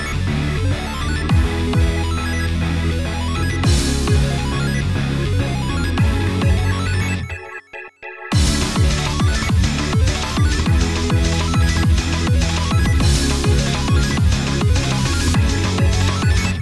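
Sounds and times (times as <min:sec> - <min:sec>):
instrumental music: 0:00.7 - 0:07.2, 0:08.3 - 0:16.6.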